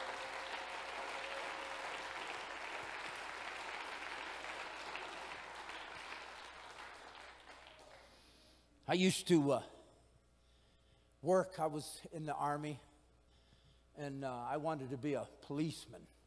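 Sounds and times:
audience clapping hands: 0.0s - 8.5s
speech: 8.9s - 9.7s, 11.2s - 12.9s, 14.0s - 16.1s.

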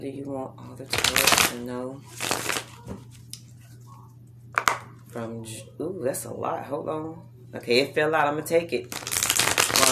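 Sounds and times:
speech: 0.0s - 3.1s, 5.2s - 9.0s
oracle cards being shuffled: 0.9s - 3.4s, 8.9s - 9.9s.

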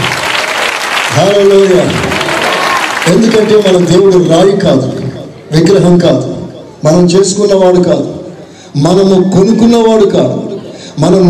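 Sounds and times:
congregation clapping at a religious gathering: 0.0s - 5.5s
speech: 1.2s - 2.1s, 3.1s - 10.4s, 11.0s - 11.2s.

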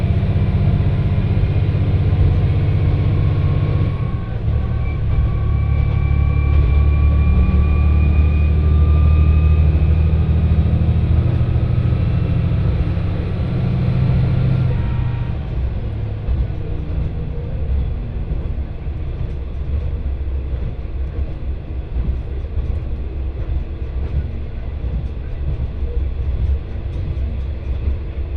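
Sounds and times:
rising train engine whine: 0.0s - 28.3s
train rumble on the Etsumi-Hokusen Line: 0.0s - 28.3s
faint high whistle: 3.9s - 9.7s.

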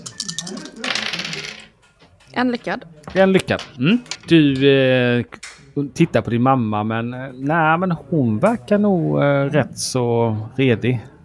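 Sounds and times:
seven dice clattering on a hard surface: 0.0s - 1.8s, 3.6s - 4.4s
speech: 2.4s - 11.1s.

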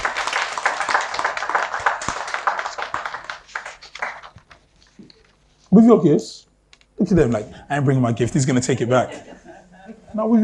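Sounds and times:
round of applause: 0.0s - 4.6s
speech: 5.7s - 9.4s, 10.2s - 10.4s
laughter: 8.6s - 10.2s.

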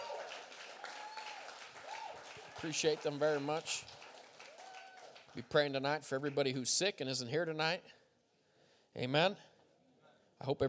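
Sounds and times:
audience applause: 0.0s - 5.6s
speech: 2.6s - 4.0s, 5.4s - 8.0s, 9.0s - 9.5s, 10.4s - 10.6s.

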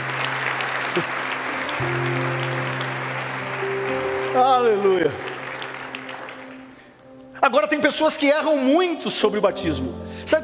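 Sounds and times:
audience applauding: 0.0s - 7.0s
speech: 1.0s - 1.2s, 1.8s - 2.4s, 4.4s - 5.3s, 7.4s - 10.4s.

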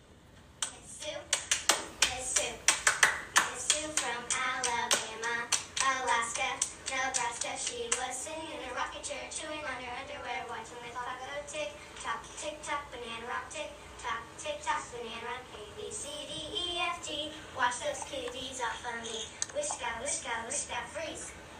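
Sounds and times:
hand claps: 0.6s - 8.2s
children singing a hand-clapping rhyme: 0.7s - 21.4s.

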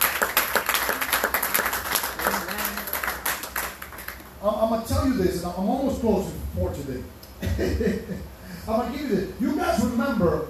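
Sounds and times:
audience clapping hands: 0.0s - 4.3s
speech: 4.4s - 10.4s.

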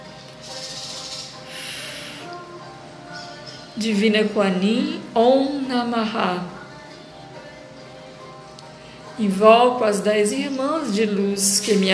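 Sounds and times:
deep breathing: 1.5s - 2.3s
speech: 3.8s - 6.6s, 9.2s - 11.9s.

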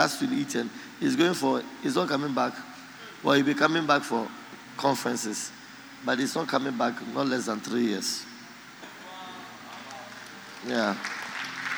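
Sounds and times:
speech: 0.0s - 8.3s, 10.6s - 11.2s
people clapping: 9.6s - 11.7s.

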